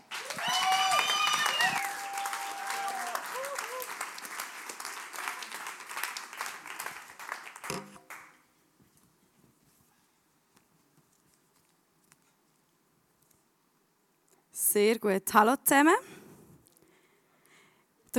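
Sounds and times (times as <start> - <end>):
standing audience applause: 0.0 - 8.3
speech: 14.8 - 16.1.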